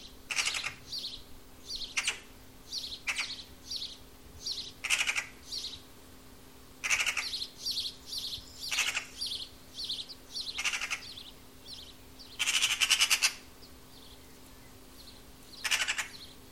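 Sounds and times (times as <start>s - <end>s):
bird calls in rapid pulsed chattering bursts: 0.3s - 1.0s, 1.8s - 2.3s, 2.9s - 3.5s, 4.4s - 5.8s, 6.8s - 7.9s, 8.6s - 13.5s, 15.6s - 16.4s.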